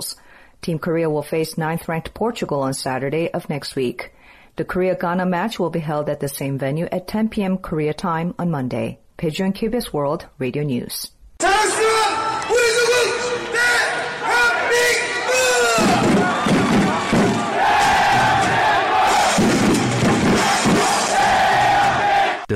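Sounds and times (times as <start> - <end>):
speech: 0.0 - 11.8
large crowd of football fans chanting and cheering in a square: 11.4 - 22.5.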